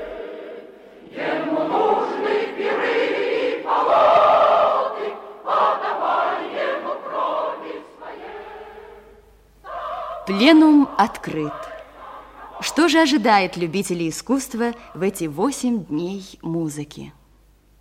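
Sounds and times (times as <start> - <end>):
choir singing a revolutionary march-like song: 0.0 - 13.8
speech: 10.3 - 11.7, 12.7 - 17.2.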